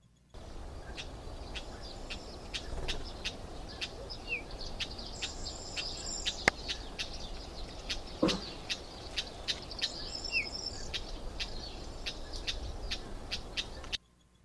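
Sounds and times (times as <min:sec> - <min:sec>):
constant hiss: 0:00.0 - 0:14.4
Cyprus wheatear song: 0:00.4 - 0:14.0.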